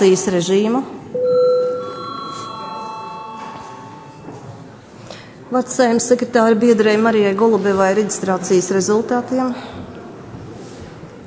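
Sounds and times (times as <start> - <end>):
speech: 0.0 - 1.1, 5.5 - 9.9
parliament session bell ringing: 1.2 - 4.6.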